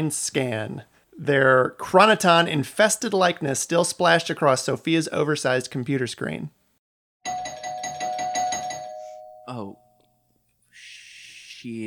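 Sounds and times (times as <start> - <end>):
speech: 0.0 - 6.6, 9.5 - 9.8, 11.6 - 11.8
doorbell ringing: 7.2 - 10.0.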